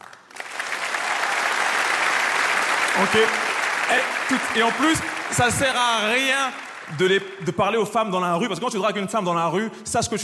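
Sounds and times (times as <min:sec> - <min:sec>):
audience applause: 0:00.0 - 0:07.7
speech: 0:03.0 - 0:10.2.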